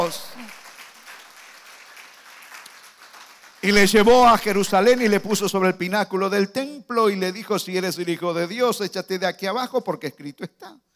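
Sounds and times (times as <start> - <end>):
speech: 0.0 - 0.6, 3.6 - 10.9
church congregation clapping for Jesus: 0.0 - 5.6.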